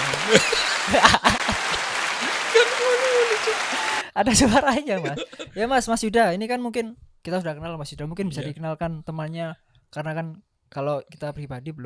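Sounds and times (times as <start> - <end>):
applause: 0.0 - 4.1
laughter: 0.0 - 5.7
speech: 0.3 - 1.4, 2.6 - 11.8.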